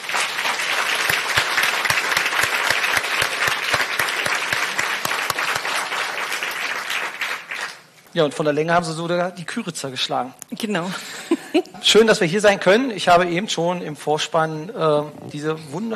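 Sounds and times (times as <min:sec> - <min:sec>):
audience applause: 0:00.0 - 0:07.9
speech: 0:08.2 - 0:15.9.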